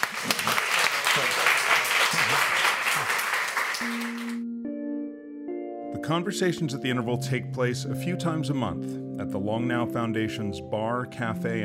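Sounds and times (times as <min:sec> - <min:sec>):
audience round of applause: 0:00.0 - 0:04.4
speech: 0:06.1 - 0:11.6.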